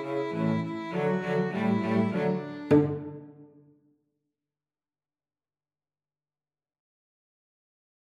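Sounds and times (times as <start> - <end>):
two cellos: 0.0 - 3.6
two violins: 0.0 - 3.6.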